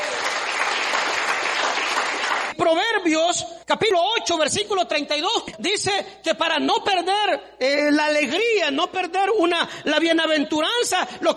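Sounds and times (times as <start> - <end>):
audience applause: 0.0 - 2.5
speech: 2.6 - 11.3.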